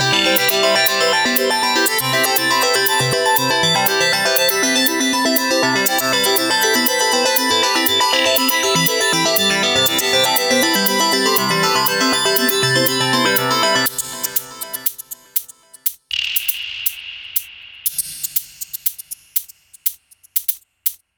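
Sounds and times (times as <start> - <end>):
quirky pretty synth arpeggios: 0.0 - 15.4.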